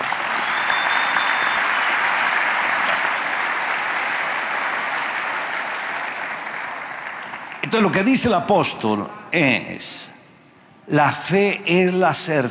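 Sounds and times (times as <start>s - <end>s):
audience applause: 0.0s - 7.8s
speech: 7.8s - 10.1s, 10.9s - 12.5s.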